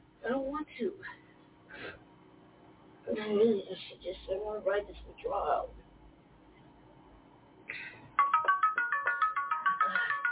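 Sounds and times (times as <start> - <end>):
speech: 3.1 - 5.8
mobile phone ringtone: 8.2 - 10.3.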